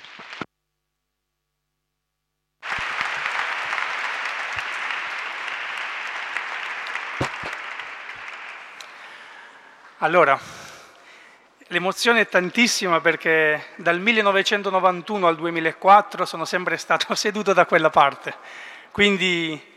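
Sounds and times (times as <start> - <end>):
audience applause: 2.6 - 9.8
speech: 10.0 - 10.6, 11.7 - 19.7.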